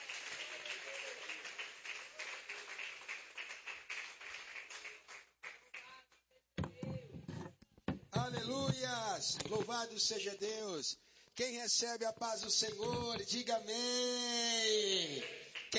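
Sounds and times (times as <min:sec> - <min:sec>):
audience applauding: 0:00.0 - 0:05.9, 0:15.2 - 0:15.7
speech: 0:08.3 - 0:15.4.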